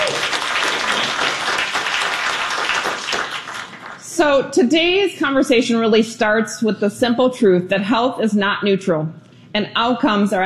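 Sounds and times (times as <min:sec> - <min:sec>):
applause: 0:00.0 - 0:04.1
speech: 0:04.2 - 0:10.4.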